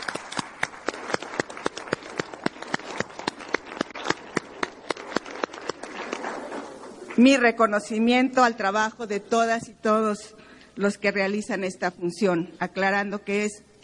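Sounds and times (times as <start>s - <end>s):
audience applause: 0.0s - 6.7s
speech: 7.2s - 13.8s.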